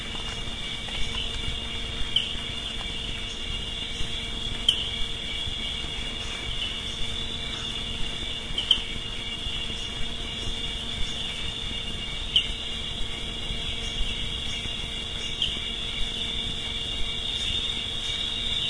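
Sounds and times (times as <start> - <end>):
cricket chirping: 0.0 - 18.6.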